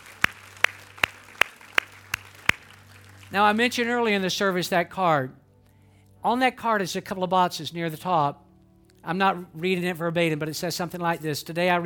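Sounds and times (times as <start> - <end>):
audience hand clapping: 0.0 - 3.8
speech: 3.3 - 5.4, 6.2 - 8.4, 9.0 - 11.8.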